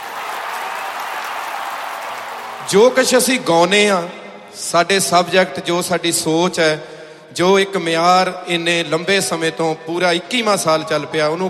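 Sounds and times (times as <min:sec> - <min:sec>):
audience applause at a live Punjabi music performance: 0:00.0 - 0:03.3
speech: 0:02.6 - 0:11.4.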